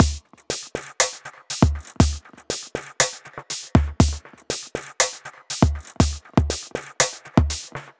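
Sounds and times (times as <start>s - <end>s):
dub beat drum loop: 0.0s - 0.2s, 1.5s - 2.2s, 3.8s - 4.2s, 5.5s - 6.7s, 7.4s - 7.7s.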